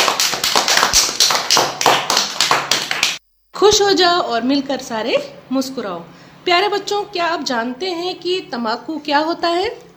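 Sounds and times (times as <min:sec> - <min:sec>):
children clapping hands: 0:00.0 - 0:03.2
speech: 0:03.6 - 0:09.9.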